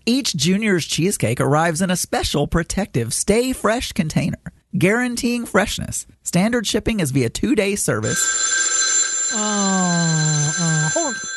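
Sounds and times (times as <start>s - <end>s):
speech: 0.0s - 8.7s, 9.3s - 11.3s
telephone ringing: 8.0s - 11.3s.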